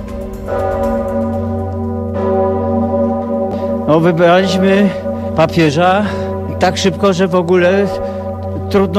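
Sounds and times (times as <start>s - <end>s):
Sigismund Bell at Wawel rung by bell-ringers on ropes: 0.0s - 8.9s
speech: 3.9s - 8.1s, 8.7s - 8.9s.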